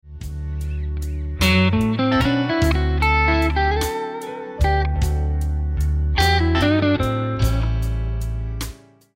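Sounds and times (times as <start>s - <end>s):
guitar lick: 0.6s - 8.7s.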